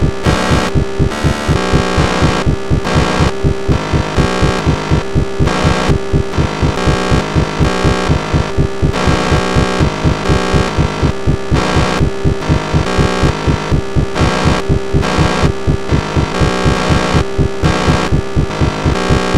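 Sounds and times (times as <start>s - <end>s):
rhythmic noise: 0.0s - 19.3s.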